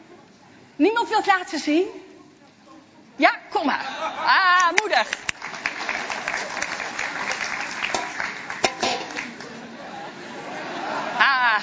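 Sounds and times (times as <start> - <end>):
speech: 0.8 - 2.0, 3.2 - 5.3
laughter: 3.7 - 5.2, 5.9 - 7.7, 9.1 - 11.6
audience applause: 4.6 - 11.2.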